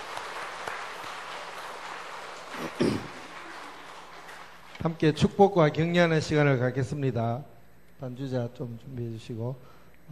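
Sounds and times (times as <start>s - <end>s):
audience applause: 0.0s - 5.0s
speech: 4.8s - 10.0s.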